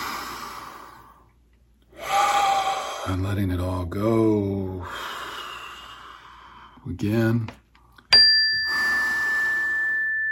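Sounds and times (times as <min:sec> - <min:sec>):
deep breathing during a guided breathing exercise: 0:00.0 - 0:03.3, 0:04.6 - 0:06.9, 0:07.8 - 0:10.2
speech: 0:03.1 - 0:05.1, 0:06.8 - 0:07.6.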